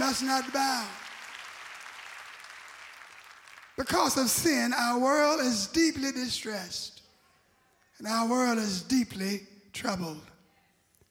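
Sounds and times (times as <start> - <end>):
audience clapping: 0.0 - 4.4
speech: 0.2 - 1.1, 3.8 - 7.0, 8.0 - 10.3.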